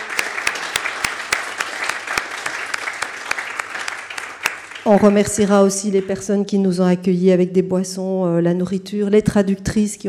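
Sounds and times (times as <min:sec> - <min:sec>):
audience applause: 0:00.1 - 0:04.8
speech: 0:04.9 - 0:10.0.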